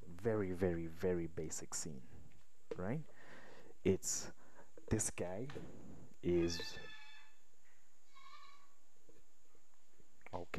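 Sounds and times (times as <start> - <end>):
speech: 0.2 - 2.2, 2.8 - 7.0, 10.3 - 10.5
goat bleating: 6.4 - 7.4, 8.1 - 8.8.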